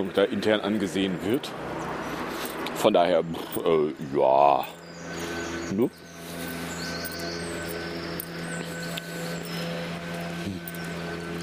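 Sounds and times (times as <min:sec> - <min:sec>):
speech: 0:00.0 - 0:01.8, 0:02.8 - 0:06.1
leaf blower running outside: 0:00.0 - 0:11.4
faint high chirps: 0:04.6 - 0:11.1.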